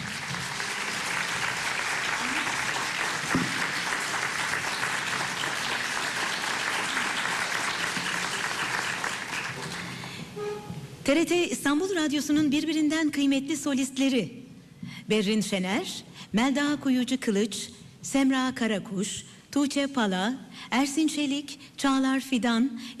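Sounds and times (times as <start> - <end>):
audience applause welcoming a conductor at a concert: 0.0 - 10.3
speech: 11.1 - 14.4, 15.1 - 22.9.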